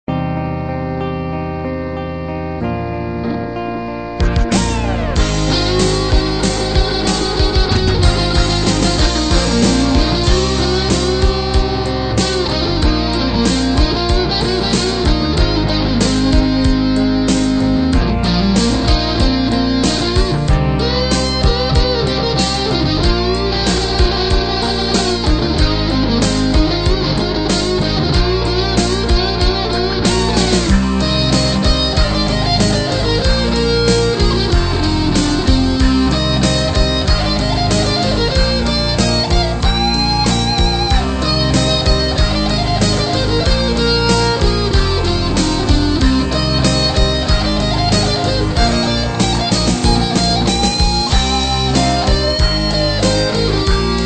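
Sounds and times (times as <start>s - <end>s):
guitar: 0.0s - 54.0s.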